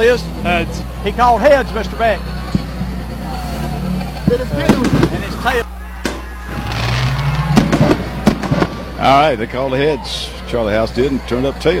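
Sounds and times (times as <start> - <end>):
speech: 0.0 - 2.4, 4.3 - 5.8, 9.0 - 11.7
loud steady roar: 0.0 - 11.7
fireworks going off at a football game: 2.4 - 9.5.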